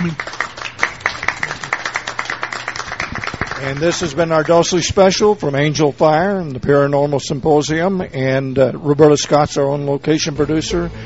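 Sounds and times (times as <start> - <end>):
speech: 0.0 - 0.3, 3.6 - 11.0
audience applause: 0.0 - 4.2.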